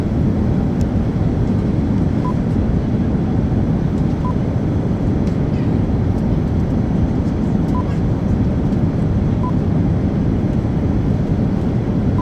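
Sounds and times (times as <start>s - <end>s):
airplane cabin ambience in flight: 0.0s - 12.1s.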